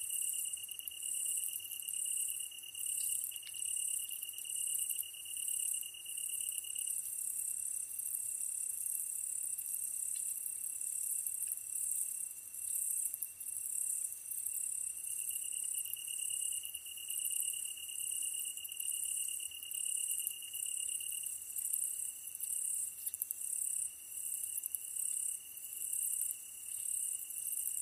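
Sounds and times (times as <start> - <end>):
tree cricket singing: 0.0 - 27.7.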